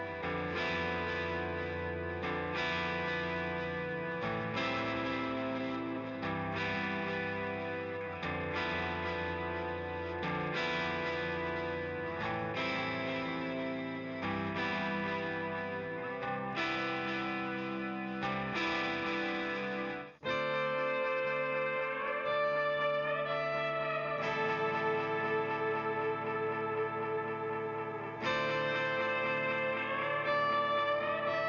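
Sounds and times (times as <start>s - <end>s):
guitar stems: 0.0s - 31.4s.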